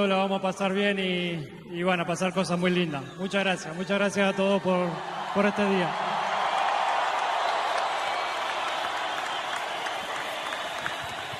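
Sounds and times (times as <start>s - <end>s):
speech: 0.0s - 6.1s
faint cheers: 2.9s - 11.3s
crowd applause: 3.8s - 11.3s.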